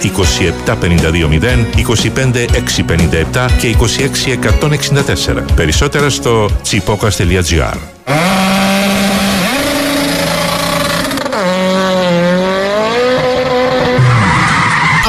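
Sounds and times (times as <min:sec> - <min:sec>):
car engine roar: 0:00.0 - 0:03.5, 0:07.9 - 0:15.0
speech: 0:00.0 - 0:08.8
car skidding tire squeal with a blown tire: 0:08.0 - 0:15.0.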